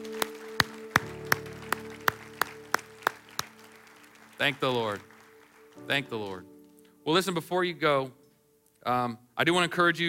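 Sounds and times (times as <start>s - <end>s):
audience clapping in unison: 0.0s - 6.6s
speech: 4.4s - 5.1s, 5.9s - 6.5s, 7.1s - 8.2s, 8.8s - 10.0s.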